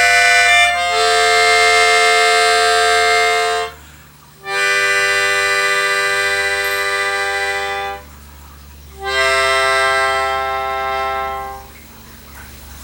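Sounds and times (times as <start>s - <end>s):
melodica: 0.0s - 3.8s, 4.4s - 8.1s, 9.0s - 11.8s.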